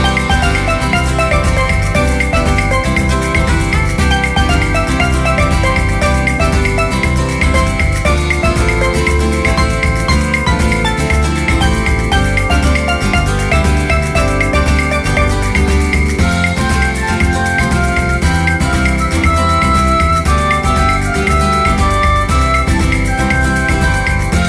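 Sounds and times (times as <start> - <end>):
background music: 0.0 - 24.4.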